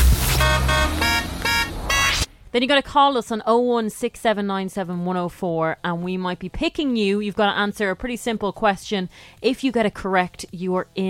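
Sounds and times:
Renault car horn beep: 0.1s - 2.3s
speech: 2.6s - 11.0s.

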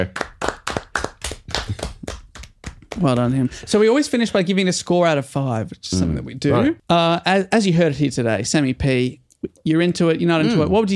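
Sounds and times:
speech: 0.0s - 0.2s, 3.0s - 10.9s
hand clapping applause: 0.0s - 3.8s.

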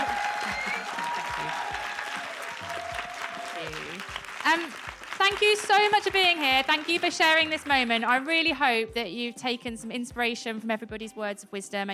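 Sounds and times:
audience applause: 0.0s - 8.0s
speech: 4.5s - 11.9s.

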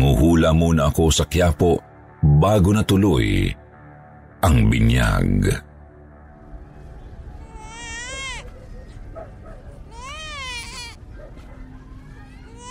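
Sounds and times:
speech: 0.2s - 3.6s, 4.4s - 5.7s
baby crying: 7.4s - 8.5s, 9.8s - 11.0s, 12.1s - 12.6s.

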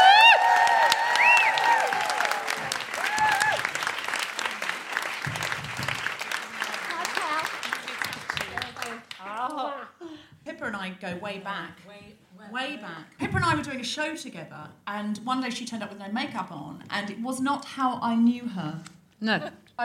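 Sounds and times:
audience applause welcoming a comedian guest: 0.0s - 9.3s
speech: 11.0s - 19.8s.

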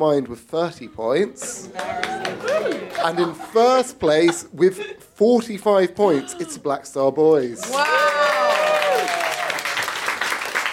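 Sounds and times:
speech: 0.0s - 8.2s
laughter: 1.6s - 4.6s
voices whooping and calling: 1.8s - 3.0s, 7.6s - 9.6s
audience applause: 1.8s - 3.3s, 7.6s - 10.7s.

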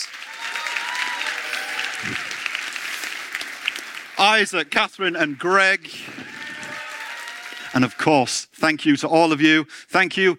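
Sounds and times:
audience applause: 0.0s - 8.3s
speech: 4.2s - 6.2s, 7.8s - 10.3s.

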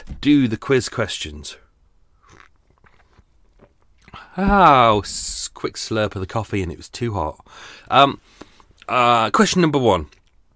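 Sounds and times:
speech: 0.2s - 1.6s, 4.4s - 10.2s
biting and chewing a big Belgian bun topped with a glacé cherry: 2.2s - 4.2s.

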